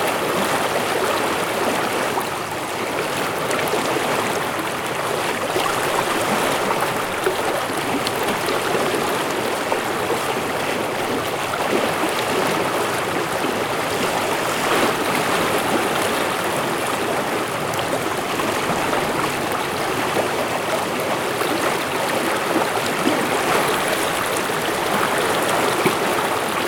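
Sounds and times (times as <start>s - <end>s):
Musconetcong River flowing: 0.0s - 26.6s.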